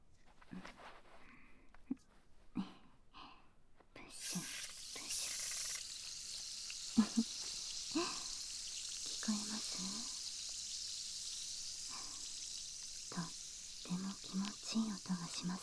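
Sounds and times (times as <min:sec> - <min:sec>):
carbonated foam fizzing in ear cleaning: 0:04.1 - 0:15.6.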